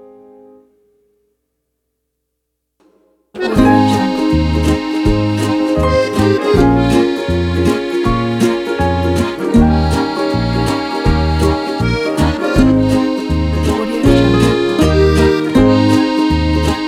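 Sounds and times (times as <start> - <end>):
French romantic music: 3.4 - 16.8.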